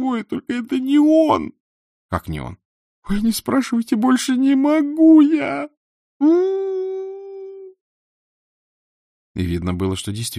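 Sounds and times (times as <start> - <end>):
speech: 0.0 - 6.6, 9.4 - 10.3
girl crying and wailing: 6.2 - 7.7.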